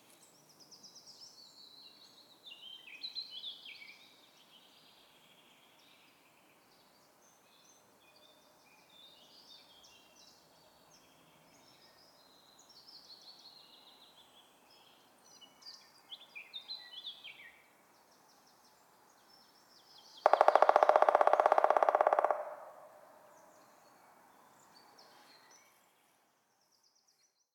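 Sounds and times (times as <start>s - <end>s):
black woodpecker drumming: 20.2s - 23.5s.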